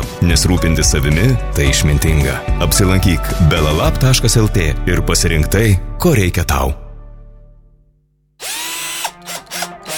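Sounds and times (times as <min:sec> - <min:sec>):
speech: 0:00.2 - 0:06.8
power drill sound effect in a tool shop advert: 0:08.4 - 0:09.9.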